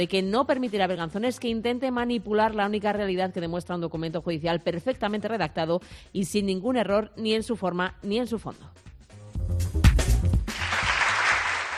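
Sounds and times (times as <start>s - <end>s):
speech: 0.0s - 8.9s
applause: 9.9s - 11.7s.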